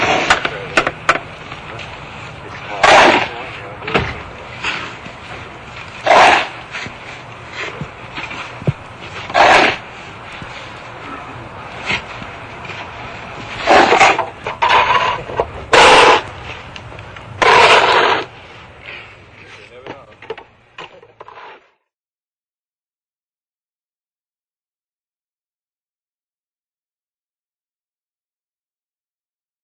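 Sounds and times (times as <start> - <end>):
shovel working: 0.0 - 1.0, 1.6 - 16.7, 17.4 - 19.8, 20.8 - 21.8.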